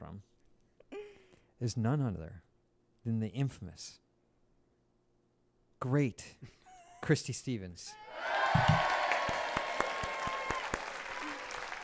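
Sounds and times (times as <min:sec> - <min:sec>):
speech: 0:01.6 - 0:04.0, 0:05.8 - 0:08.7
applause: 0:08.2 - 0:11.8.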